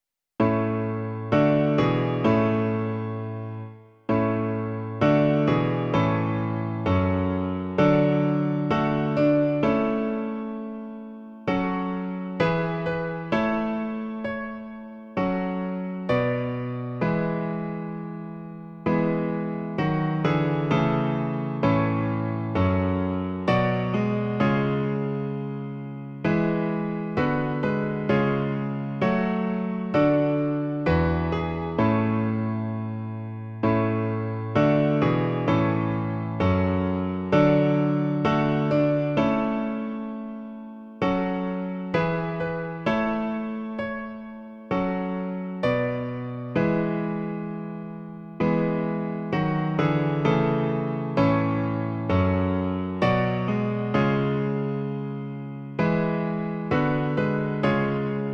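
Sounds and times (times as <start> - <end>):
piano: 0.0 - 58.3.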